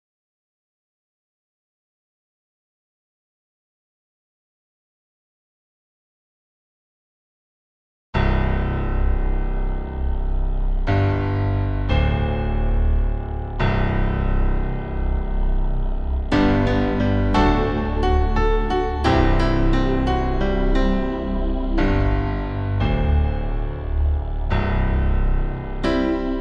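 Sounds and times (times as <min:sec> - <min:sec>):
piano: 0:08.2 - 0:26.3.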